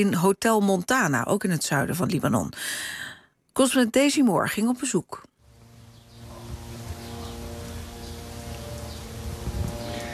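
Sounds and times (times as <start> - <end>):
speech: 0.0 - 3.0, 3.6 - 5.3
drone flying overhead: 5.4 - 10.1
birds chirping: 5.5 - 10.1.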